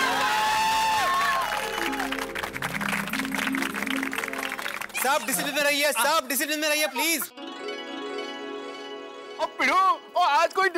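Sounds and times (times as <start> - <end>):
crowd applause and cheering: 0.0 - 6.4
speech: 5.1 - 7.4, 10.4 - 10.7.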